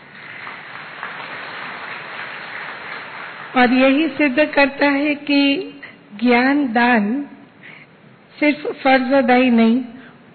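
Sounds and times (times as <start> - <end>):
audience clapping: 0.0 - 4.4
speech: 3.5 - 7.4, 8.4 - 10.0.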